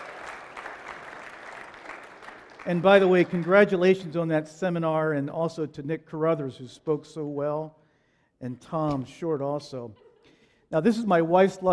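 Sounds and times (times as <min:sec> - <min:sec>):
audience at a seminar applauding a prop assistant: 0:00.0 - 0:03.9
speech: 0:02.6 - 0:07.8, 0:08.4 - 0:10.0, 0:10.7 - 0:11.7.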